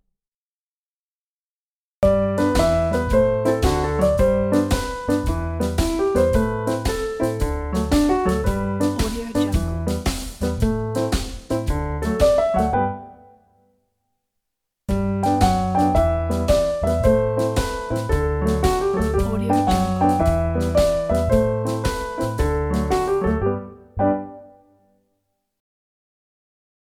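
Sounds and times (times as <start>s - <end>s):
happy music for animated film: 2.0s - 13.3s, 14.9s - 24.6s.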